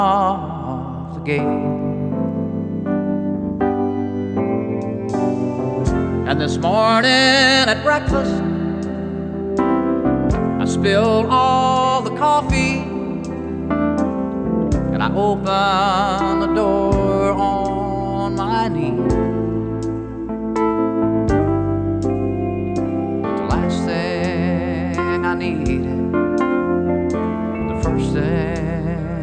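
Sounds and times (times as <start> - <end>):
country music: 0.0 - 29.2.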